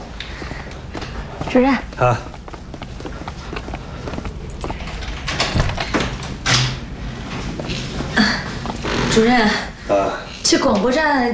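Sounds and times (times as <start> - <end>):
speech: 1.4 - 2.3, 9.2 - 11.3
knocks and scrapes: 2.2 - 9.6
door of a broadcast room opening: 4.1 - 9.4
key unlocking the door of a long-unused broadcast room: 4.4 - 6.8.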